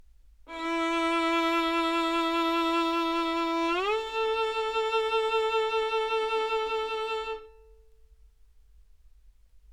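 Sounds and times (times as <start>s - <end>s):
violin playing two notes: 0.5s - 7.9s.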